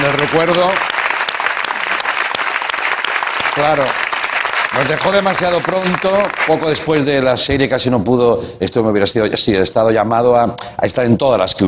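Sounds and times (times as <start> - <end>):
speech: 0.0 - 0.9, 3.6 - 4.0, 4.7 - 11.6
audience applause: 0.0 - 7.3.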